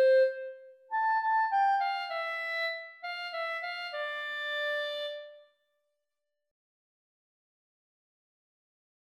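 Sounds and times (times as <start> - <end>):
clarinet: 0.0 - 5.7.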